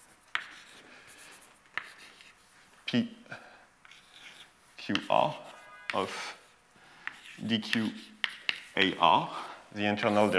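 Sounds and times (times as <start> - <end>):
marker writing a letter on a board during a lecture: 0.0 - 0.8, 3.8 - 9.0
speech: 2.9 - 3.3, 4.9 - 6.4, 7.4 - 8.1, 8.8 - 10.3.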